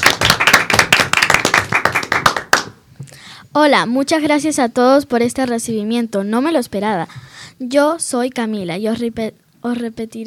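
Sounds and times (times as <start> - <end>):
welcoming applause: 0.0 - 2.8
speech: 3.6 - 10.2.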